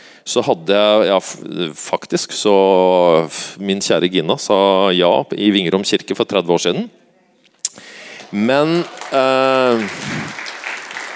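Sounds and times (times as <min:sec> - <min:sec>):
speech: 0:00.2 - 0:07.0, 0:08.3 - 0:10.4
applause: 0:08.0 - 0:11.1.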